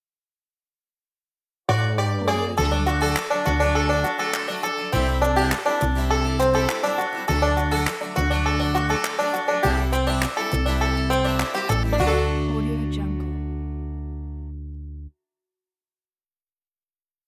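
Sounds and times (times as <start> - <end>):
funky bluegrass logo jingle: 1.7 - 14.4.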